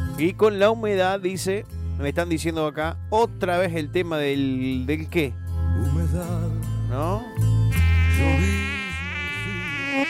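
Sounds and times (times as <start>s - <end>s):
speech: 0.2s - 7.5s
mosquito buzzing near the ear: 7.7s - 10.0s.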